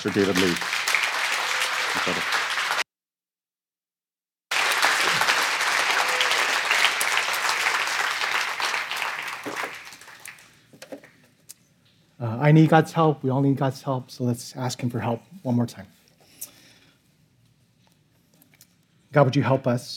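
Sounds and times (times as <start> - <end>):
speech: 0.0 - 0.8, 2.0 - 2.4, 12.5 - 16.0, 19.1 - 19.9
audience applauding: 0.0 - 2.8, 4.5 - 10.6.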